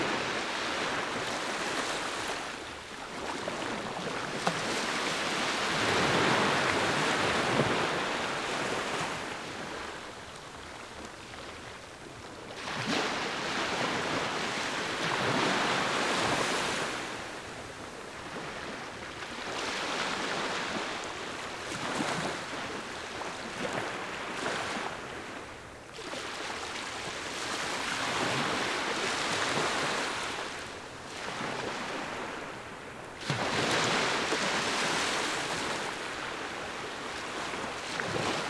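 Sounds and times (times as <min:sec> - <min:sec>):
beach waves in Fiji: 0:00.0 - 0:38.4.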